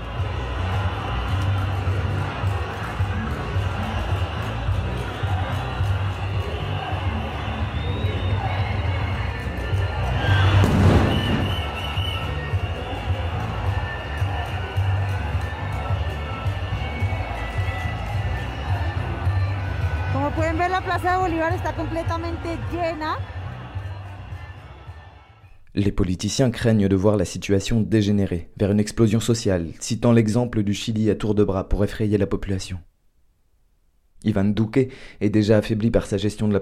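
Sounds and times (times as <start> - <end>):
crowd filling Plaza Bolívar in Bogota: 0.0 - 25.5
speech: 20.9 - 23.3, 25.8 - 32.9, 34.2 - 36.6.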